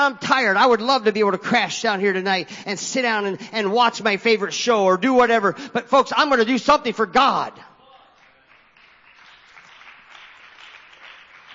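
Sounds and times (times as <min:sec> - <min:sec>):
speech: 0:00.0 - 0:07.7
audience clapping: 0:07.9 - 0:11.5.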